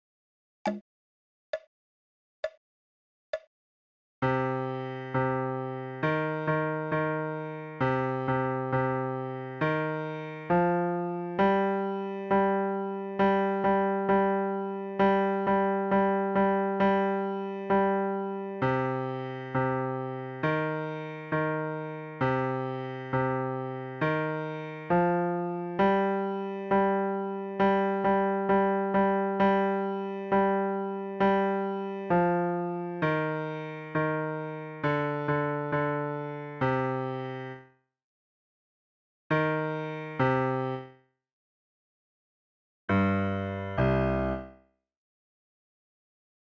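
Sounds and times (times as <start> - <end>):
slow piano piece: 4.2 - 37.6, 39.3 - 40.9, 42.9 - 44.6.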